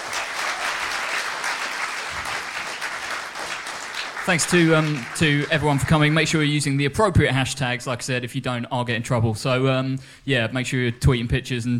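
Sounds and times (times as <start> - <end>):
crowd applause: 0.0 - 6.5
speech: 4.2 - 11.7.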